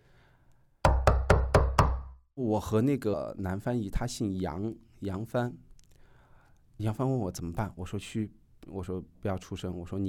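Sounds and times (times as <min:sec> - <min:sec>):
people banging on a door: 0:00.9 - 0:02.1
speech: 0:02.4 - 0:05.7, 0:06.8 - 0:10.0.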